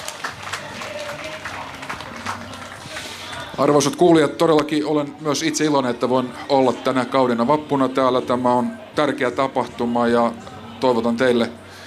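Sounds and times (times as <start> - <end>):
audience applause at a May Day event: 0.0 - 4.0
speech: 3.6 - 11.6.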